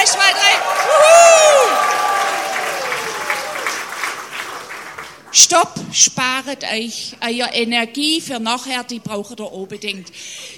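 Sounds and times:
crowd cheering, whoop and shouts: 0.0s - 3.8s
audience clapping: 0.0s - 5.4s
speech: 5.5s - 10.5s.

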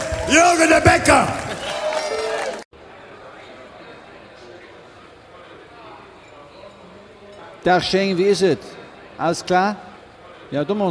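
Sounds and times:
audience applause: 0.0s - 2.7s
speech: 0.3s - 1.4s, 7.6s - 9.9s, 10.5s - 10.8s
crowd murmur: 1.4s - 6.2s.

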